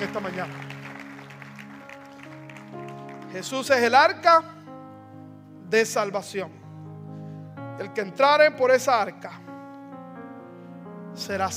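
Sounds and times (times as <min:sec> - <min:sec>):
speech: 0:00.0 - 0:00.8, 0:03.3 - 0:04.5, 0:05.7 - 0:06.6, 0:07.8 - 0:09.4, 0:11.2 - 0:11.5
audience applause: 0:00.0 - 0:03.7.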